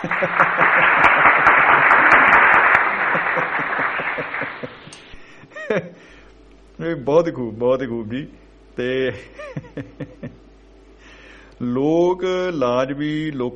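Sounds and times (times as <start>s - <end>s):
speech: 0.0s - 1.0s, 5.7s - 6.2s, 6.8s - 10.4s, 11.6s - 13.5s
audience applause welcoming a speaker on a Punjabi talk programme: 0.0s - 5.2s
laughter: 0.0s - 6.0s, 9.2s - 10.4s.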